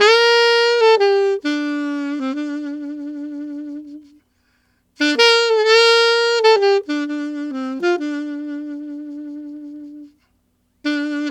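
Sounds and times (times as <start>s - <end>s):
alto saxophone country waltz in G minor: 0.0s - 4.3s, 5.0s - 11.2s.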